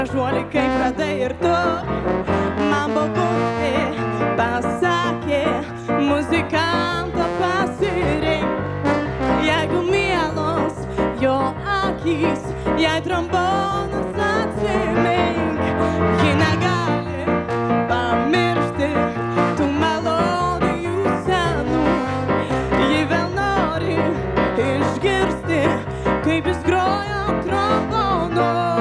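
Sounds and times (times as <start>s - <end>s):
trombones: 0.1s - 28.7s.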